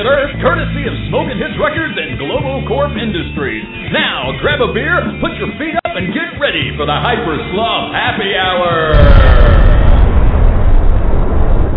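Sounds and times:
speech: 0:00.0 - 0:09.8
loud stock explosion sound effect: 0:08.9 - 0:11.7.

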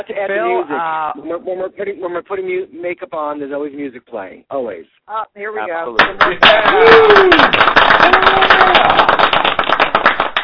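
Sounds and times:
speech: 0:00.0 - 0:09.2
group of people clapping: 0:06.0 - 0:10.4.

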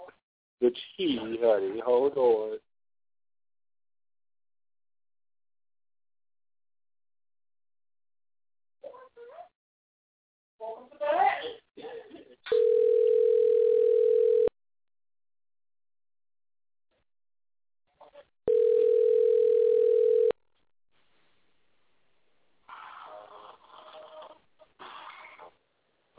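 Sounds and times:
speech: 0:00.6 - 0:02.7
telephone line tone while a call is placed: 0:12.5 - 0:14.5, 0:18.5 - 0:20.4.

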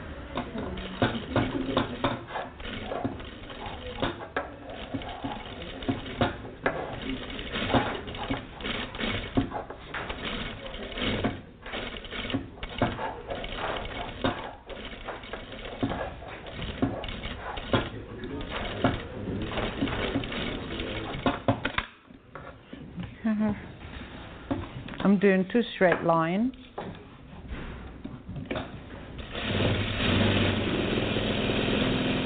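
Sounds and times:
sewing machine stitching a slow curve: 0:00.3 - 0:21.8, 0:28.4 - 0:32.2
speech: 0:25.2 - 0:26.6.

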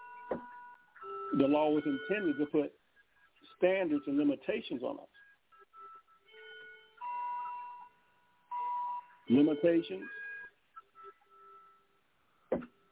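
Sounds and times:
clock chime: 0:00.0 - 0:02.7, 0:06.3 - 0:10.2
speech: 0:01.3 - 0:02.8, 0:03.6 - 0:05.2, 0:09.3 - 0:10.2.

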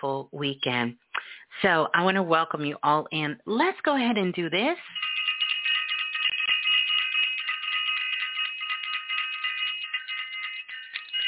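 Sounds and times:
speech: 0:00.0 - 0:05.1
bell ringing: 0:04.9 - 0:11.2.

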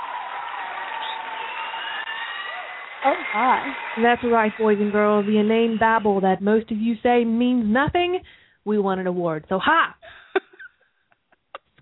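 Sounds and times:
applause sound effect: 0:00.0 - 0:06.2
cheering: 0:00.0 - 0:06.2
speech: 0:03.0 - 0:10.0.

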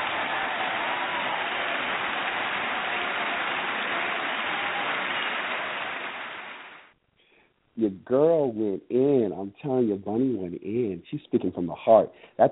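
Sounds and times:
crowd applause sound effect: 0:00.0 - 0:06.9
speech: 0:07.8 - 0:12.5.

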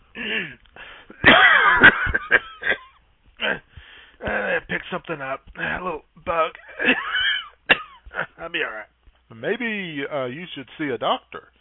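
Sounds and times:
person coughing: 0:00.2 - 0:04.5, 0:06.7 - 0:08.3
speech: 0:05.1 - 0:07.0, 0:08.5 - 0:11.5.

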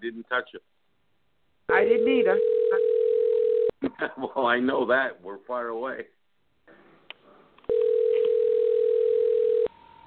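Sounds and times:
speech: 0:00.0 - 0:00.8, 0:01.7 - 0:02.9, 0:03.8 - 0:06.2
phone ringing: 0:01.8 - 0:03.7, 0:07.7 - 0:10.0.

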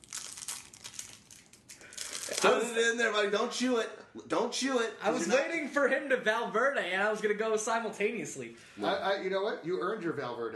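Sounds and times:
hard candy wrapper crinkling as it's opened: 0:00.0 - 0:02.6
speech: 0:02.4 - 0:10.5.

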